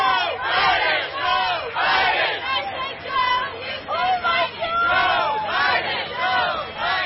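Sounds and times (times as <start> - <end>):
crowd at an Independence Day parade in Iowa: 0.0 - 7.0.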